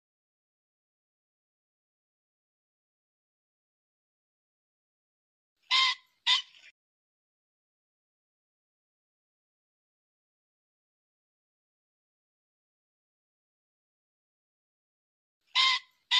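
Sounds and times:
pheasant squawking: 0:05.7 - 0:06.7, 0:15.5 - 0:16.1.

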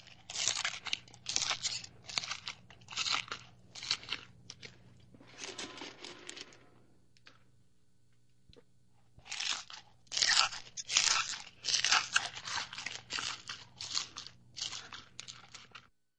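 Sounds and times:
chewing popcorn: 0:00.0 - 0:05.8, 0:09.2 - 0:15.9.

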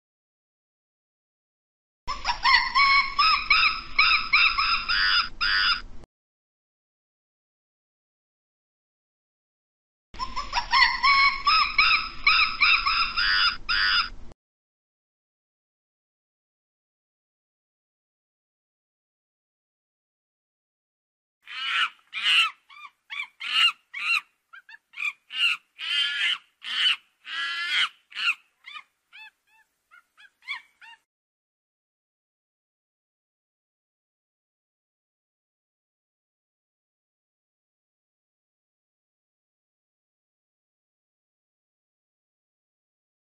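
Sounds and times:
monkey calls: 0:02.1 - 0:05.8, 0:10.2 - 0:14.2, 0:21.4 - 0:31.1.

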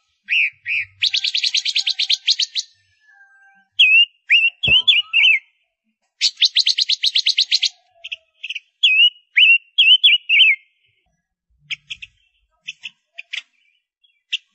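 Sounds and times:
Gouldian finch singing: 0:00.0 - 0:05.6, 0:06.2 - 0:11.0, 0:11.6 - 0:14.5.

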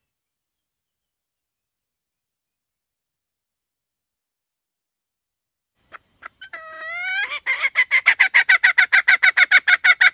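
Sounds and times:
red junglefowl hen clucking: 0:05.9 - 0:10.1.

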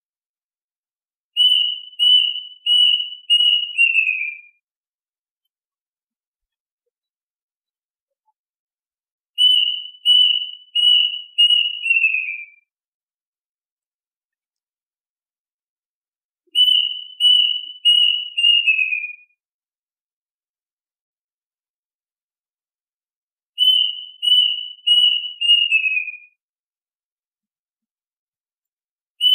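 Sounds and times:
duck whistled calls: 0:01.4 - 0:04.4, 0:09.4 - 0:12.5, 0:16.6 - 0:19.2, 0:23.6 - 0:26.2.

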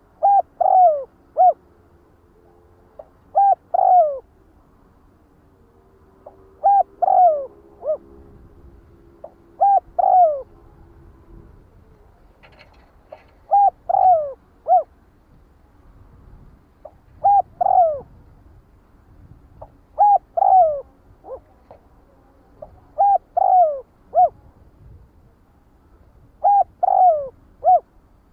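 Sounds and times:
spotted dove cooing: 0:00.0 - 0:01.7, 0:02.4 - 0:04.4, 0:06.2 - 0:15.0, 0:16.8 - 0:18.2, 0:19.6 - 0:24.5, 0:26.4 - 0:27.9.

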